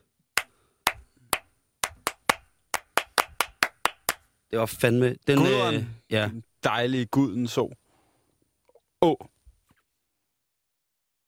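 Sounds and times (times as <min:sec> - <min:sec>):
person clapping: 0:00.4 - 0:04.2
speech: 0:04.5 - 0:07.8, 0:09.0 - 0:09.3.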